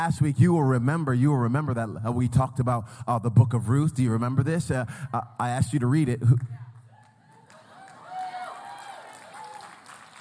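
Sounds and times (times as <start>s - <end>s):
speech: 0.0s - 6.6s
audience clapping: 6.9s - 10.1s.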